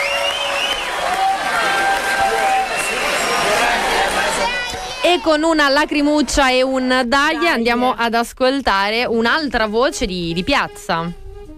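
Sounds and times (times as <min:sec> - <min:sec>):
concert crowd applauding at the end of a show: 0:00.0 - 0:06.3
speech: 0:05.1 - 0:11.2.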